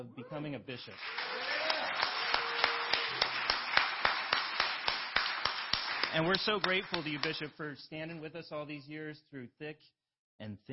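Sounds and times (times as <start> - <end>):
speech: 0.0 - 2.1, 6.1 - 10.7
audience applause: 1.0 - 7.5.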